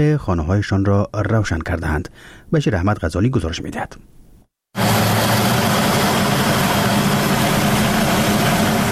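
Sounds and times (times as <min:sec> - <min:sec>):
speech: 0:00.0 - 0:04.2
small electricity-generating turbine running in Dowab village, Khinjan district, Baghlan: 0:04.8 - 0:08.8.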